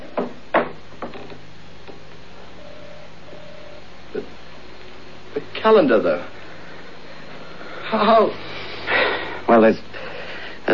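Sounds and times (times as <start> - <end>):
stuck door being forced: 0.0 - 2.0
faint creaking tone: 1.0 - 2.1
speech: 5.6 - 6.4, 7.9 - 8.4, 9.5 - 9.9.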